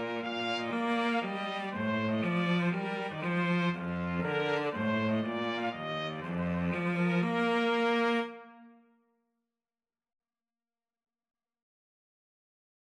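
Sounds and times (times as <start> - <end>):
trumpet and cello duet: 0.0 - 8.8.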